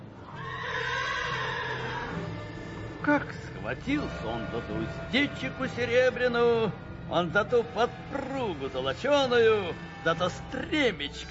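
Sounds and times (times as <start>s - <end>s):
warrior's horse neighing: 0.2s - 3.1s, 8.1s - 8.6s
speech: 3.1s - 11.2s.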